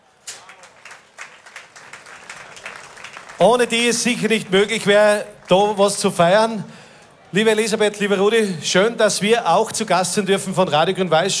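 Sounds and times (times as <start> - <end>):
audience applause: 0.2 - 6.6
speech: 3.4 - 6.7, 7.3 - 11.3.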